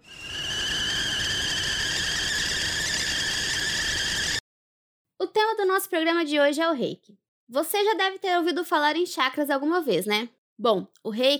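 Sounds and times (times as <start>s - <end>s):
whistling kettle: 0.0s - 4.4s
speech: 5.6s - 11.3s.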